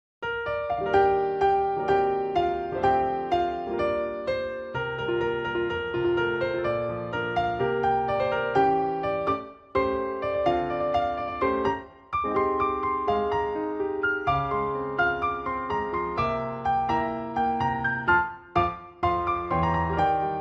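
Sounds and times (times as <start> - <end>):
piano: 0.2 - 20.3.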